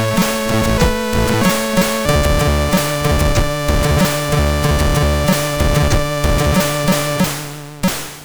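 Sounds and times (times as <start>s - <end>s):
MOS6581R4 SID sound chip tones: 0.0s - 8.0s.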